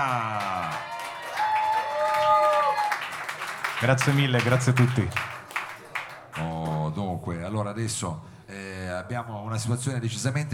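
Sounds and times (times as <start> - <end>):
speech: 0.0 - 0.5, 3.8 - 5.3, 7.8 - 8.3, 9.0 - 10.5
audience applause welcoming band: 0.0 - 6.9.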